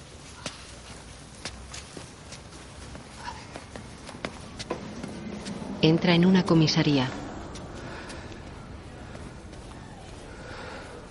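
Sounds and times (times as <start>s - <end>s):
uneven footsteps of a man walking with a limp: 0.0s - 11.0s
speech: 5.8s - 7.2s.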